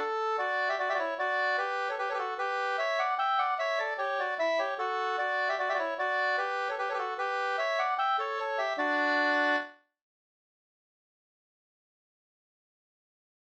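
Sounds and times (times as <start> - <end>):
waltz in two parts: 0.0 - 9.8.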